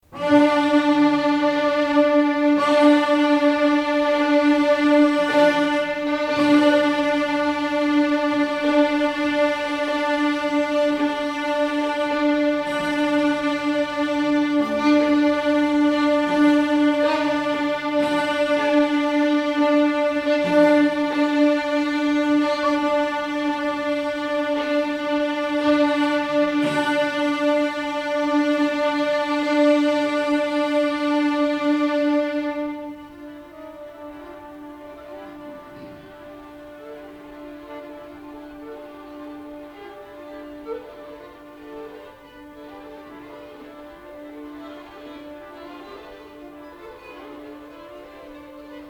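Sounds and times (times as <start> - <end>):
music for strings: 0.0 - 48.8.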